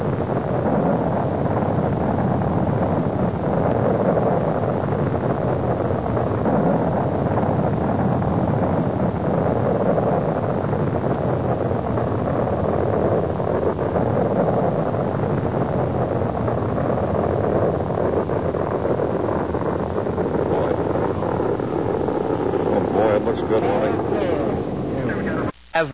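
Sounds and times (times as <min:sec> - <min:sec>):
rumble: 0:00.0 - 0:25.9.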